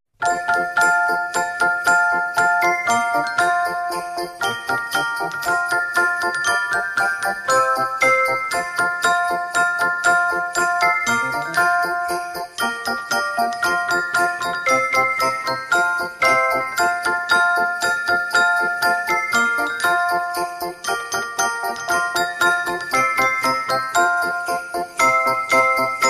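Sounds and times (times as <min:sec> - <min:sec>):
celesta playing a Christmas tune: 0:00.2 - 0:26.0.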